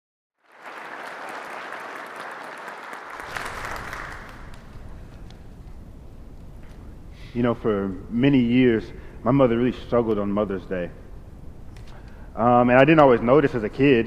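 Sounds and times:
church congregation applause welcoming a guest during a morning service: 0:00.4 - 0:05.4
speech: 0:07.3 - 0:11.0, 0:12.4 - 0:14.0.

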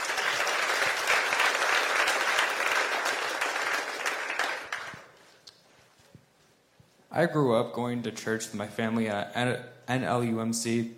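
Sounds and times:
church congregation clapping for a youth group member coming on stage: 0:00.0 - 0:05.4
speech: 0:07.2 - 0:10.9.

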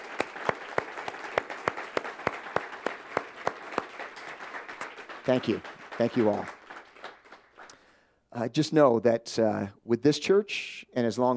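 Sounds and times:
audience applause: 0:00.0 - 0:07.8
speech: 0:05.3 - 0:06.6, 0:08.4 - 0:11.3.

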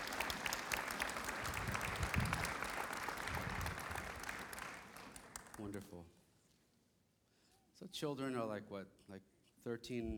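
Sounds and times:
audience applause: 0:00.0 - 0:05.7
speech: 0:05.6 - 0:06.2, 0:07.8 - 0:10.1.

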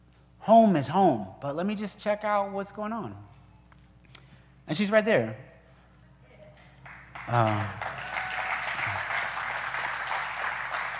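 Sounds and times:
speech: 0:00.5 - 0:03.4, 0:04.7 - 0:05.5, 0:07.2 - 0:07.9
audience applause: 0:06.8 - 0:10.9.

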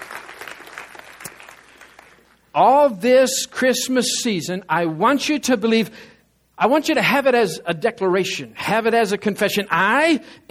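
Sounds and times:
congregation clapping hands in praise during a Christmas-season church sermon: 0:00.0 - 0:02.5
speech: 0:02.6 - 0:10.5.

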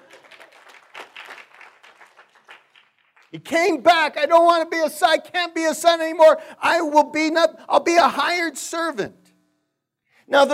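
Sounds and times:
audience clapping and cheering: 0:00.0 - 0:03.5
speech: 0:03.3 - 0:09.2, 0:10.3 - 0:10.5.

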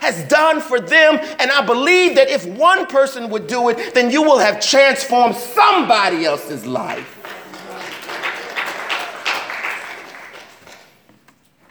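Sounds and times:
speech: 0:00.1 - 0:07.2
sparse applause: 0:03.6 - 0:11.1.

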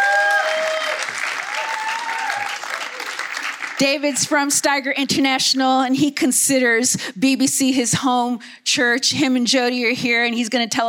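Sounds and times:
audience applause at a church gathering: 0:00.0 - 0:04.2
speech: 0:03.8 - 0:10.8.

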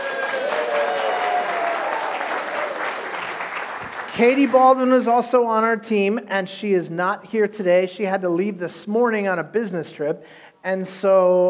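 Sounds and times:
wild audience applause: 0:00.0 - 0:04.8
speech: 0:04.2 - 0:11.4.

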